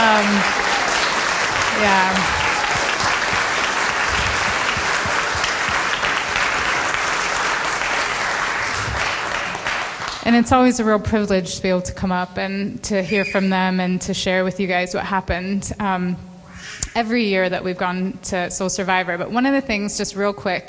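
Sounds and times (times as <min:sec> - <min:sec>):
audience applause: 0:00.0 - 0:10.2
speech: 0:01.8 - 0:02.4, 0:10.3 - 0:20.6.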